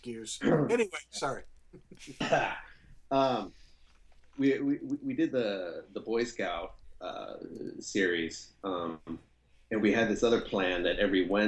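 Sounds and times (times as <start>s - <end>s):
speech: 0.0s - 3.6s, 4.4s - 11.4s
person coughing after cranberry juice went down the wrong way: 2.0s - 3.4s.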